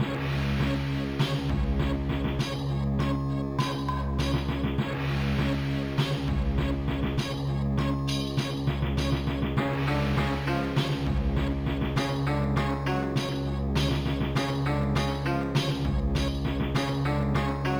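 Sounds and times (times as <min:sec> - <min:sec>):
opening music loop: 0:00.0 - 0:17.7.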